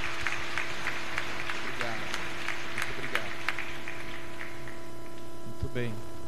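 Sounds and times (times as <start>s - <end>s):
community applause: 0.0s - 5.0s
speech: 5.8s - 6.1s.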